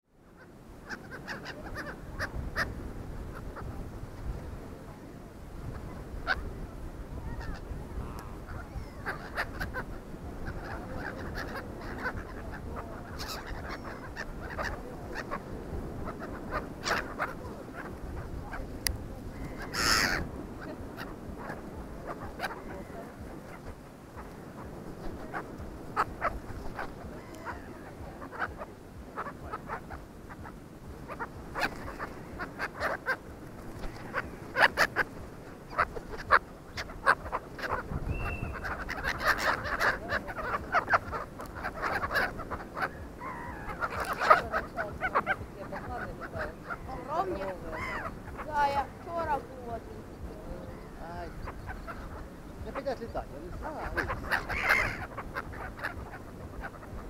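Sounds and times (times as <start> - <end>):
gulls crying on the Sea of Azov: 0.4 - 57.0.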